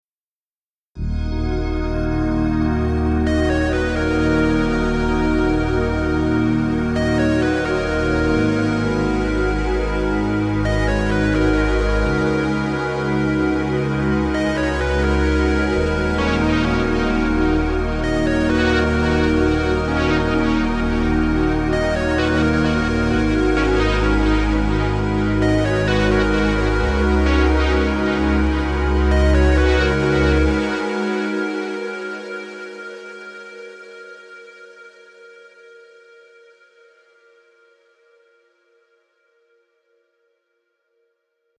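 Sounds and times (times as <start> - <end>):
music loop: 1.4 - 32.5.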